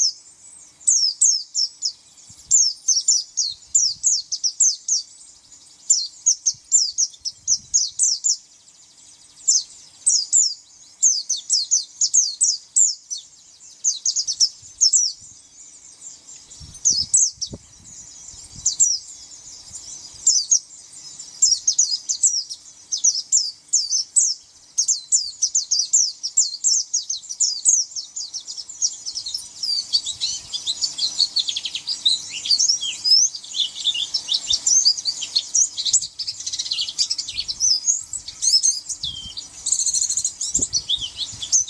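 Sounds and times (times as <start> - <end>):
white-eye song: 0.0 - 41.6.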